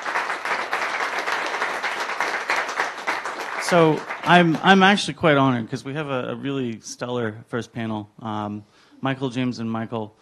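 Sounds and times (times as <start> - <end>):
audience applause: 0.0 - 5.1
speech: 3.7 - 10.2.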